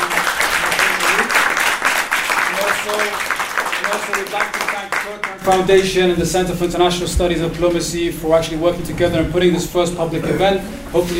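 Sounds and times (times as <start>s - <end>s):
audience applause: 0.0s - 5.9s
speech: 2.8s - 11.1s.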